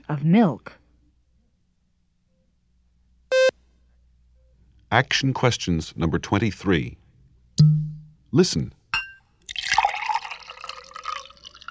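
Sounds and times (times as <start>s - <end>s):
speech: 0.1s - 0.8s, 4.9s - 7.0s, 7.6s - 8.8s
Beaujolais wine pouring into a glass: 9.4s - 11.6s.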